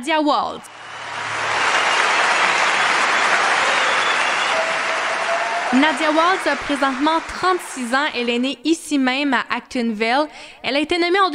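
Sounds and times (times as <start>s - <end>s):
speech: 0.0s - 0.8s, 5.7s - 11.3s
audience applause welcoming a singer onto the stage at a regional cultural festival: 0.7s - 8.4s.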